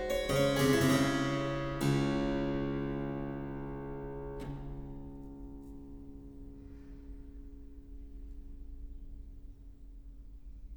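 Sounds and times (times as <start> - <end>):
harpsichord sarabande in D minor: 0.0 - 7.8.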